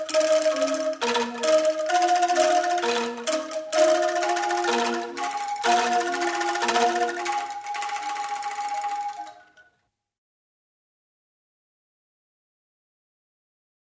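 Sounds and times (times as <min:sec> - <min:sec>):
angklung percussion: 0:00.0 - 0:09.7.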